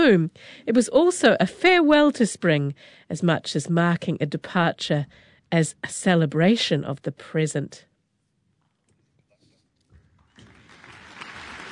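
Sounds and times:
speech: 0:00.0 - 0:07.9
concert audience applause: 0:10.3 - 0:11.7.

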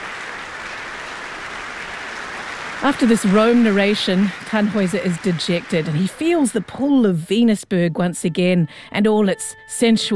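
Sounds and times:
concert audience applause for the concertmaster: 0:00.0 - 0:06.8
speech: 0:02.8 - 0:10.1.

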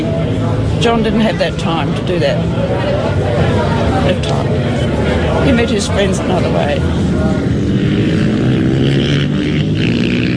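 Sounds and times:
British, European and American motorbikes at a race meet: 0:00.0 - 0:10.3
speech: 0:00.8 - 0:07.6.

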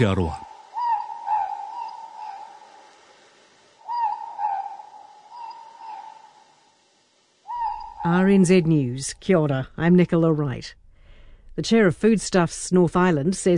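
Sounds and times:
speech: 0:00.0 - 0:00.5, 0:08.0 - 0:10.8, 0:11.6 - 0:13.5
morepork owl two-note more-pork hoot: 0:00.0 - 0:09.0.

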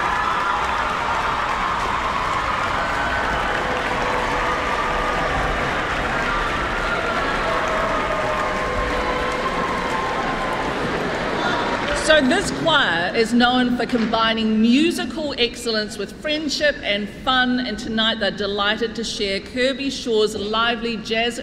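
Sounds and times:
audience applause: 0:00.0 - 0:12.5
speech: 0:12.2 - 0:21.4.

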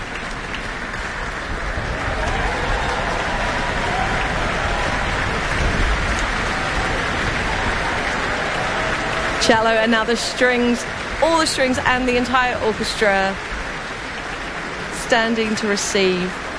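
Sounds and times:
concert audience applause: 0:00.0 - 0:16.5
speech: 0:09.5 - 0:13.6, 0:15.1 - 0:16.4.

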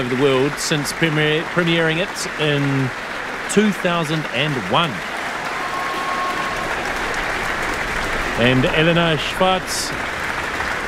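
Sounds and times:
speech: 0:00.0 - 0:05.1, 0:08.4 - 0:10.0
concert audience applause: 0:00.0 - 0:10.8.

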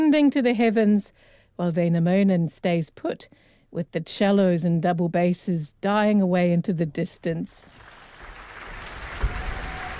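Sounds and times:
speech: 0:00.1 - 0:07.9
audience applause for a conductor at an orchestra concert: 0:07.7 - 0:09.9.

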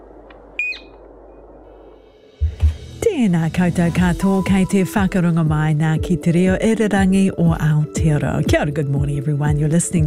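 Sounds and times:
fernbird calling: 0:00.6 - 0:01.5
speech: 0:03.1 - 0:10.0.

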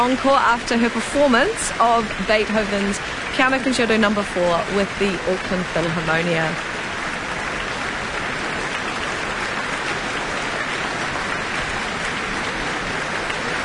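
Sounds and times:
speech: 0:00.0 - 0:06.8
concert audience applause: 0:07.0 - 0:13.6.

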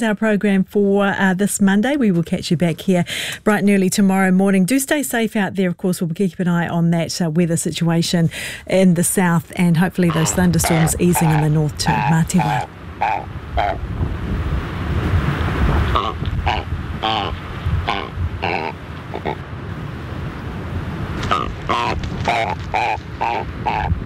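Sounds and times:
speech: 0:00.0 - 0:15.2
wind: 0:00.0 - 0:24.0
Chatham Island shag calls, harsh guttural grunts and croaks: 0:10.1 - 0:13.8, 0:15.8 - 0:19.4, 0:21.2 - 0:24.0
surf: 0:10.2 - 0:24.0.

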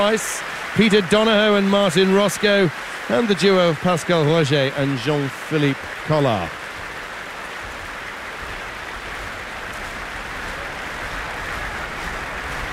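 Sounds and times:
speech: 0:00.0 - 0:06.6
crowd applause in the Royal Albert Hall: 0:00.0 - 0:12.7.

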